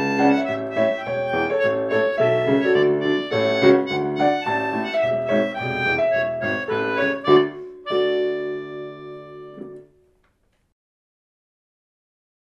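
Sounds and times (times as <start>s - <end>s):
polka music: 0.0s - 10.0s.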